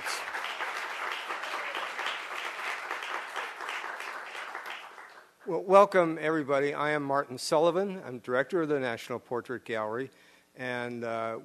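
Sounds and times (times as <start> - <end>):
audience applause for a school jazz ensemble: 0.0 - 5.2
speech: 5.5 - 11.4.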